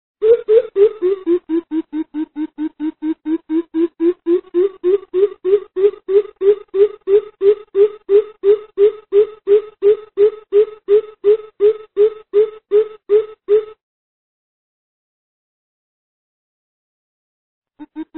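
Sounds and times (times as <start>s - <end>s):
bim bip coucal calling its flock: 0.2s - 2.6s, 3.8s - 13.7s.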